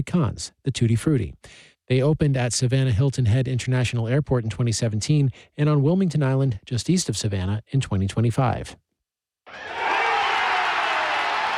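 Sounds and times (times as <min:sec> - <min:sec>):
speech: 0:00.0 - 0:08.9
baseball fans cheering at Truist Park: 0:09.5 - 0:11.5.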